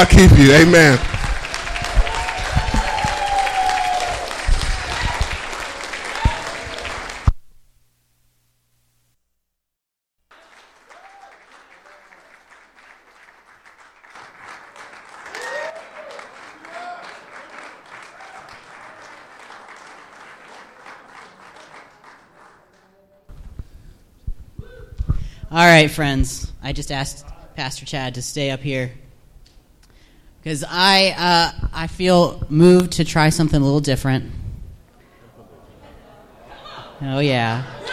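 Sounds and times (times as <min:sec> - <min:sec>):
speech: 0:00.0 - 0:01.1, 0:25.6 - 0:29.0, 0:30.4 - 0:34.4, 0:37.0 - 0:37.9
audience clapping hands: 0:00.0 - 0:07.4, 0:10.3 - 0:23.3
laughter: 0:35.0 - 0:37.9.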